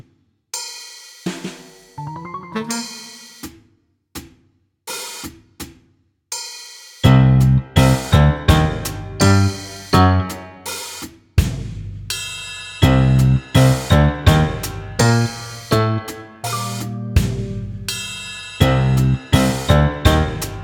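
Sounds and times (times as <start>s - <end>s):
spy music loop: 2.0s - 3.3s, 7.1s - 10.8s, 12.8s - 20.6s.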